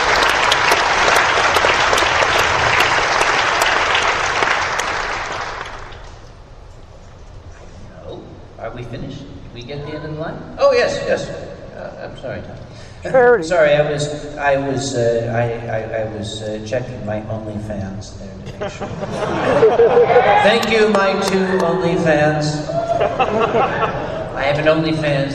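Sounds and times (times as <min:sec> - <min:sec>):
audience applause: 0:00.0 - 0:06.2, 0:19.5 - 0:21.9
speech: 0:12.2 - 0:25.3
laughter: 0:18.5 - 0:24.6.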